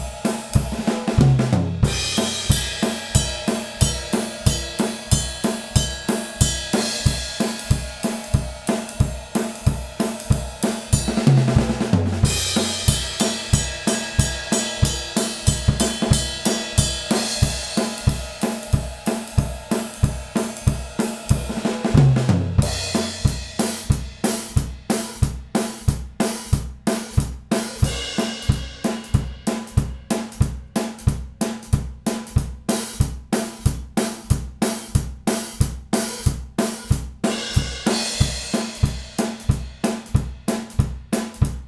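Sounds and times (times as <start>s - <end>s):
drums in stereo: 0.0s - 41.6s.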